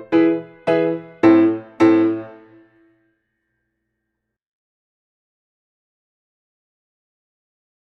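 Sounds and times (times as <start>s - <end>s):
Russian dance music: 0.1s - 2.6s.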